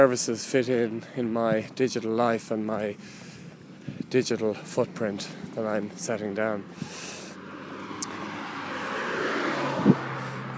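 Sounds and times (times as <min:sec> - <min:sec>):
speech: 0:00.0 - 0:03.3, 0:04.1 - 0:07.1
road traffic passing: 0:00.0 - 0:10.5.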